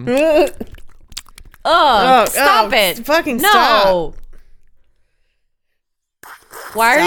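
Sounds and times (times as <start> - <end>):
speech: 0.0 - 0.8, 1.6 - 4.2, 6.8 - 7.0
crunchy chewing on snacks: 0.6 - 1.7.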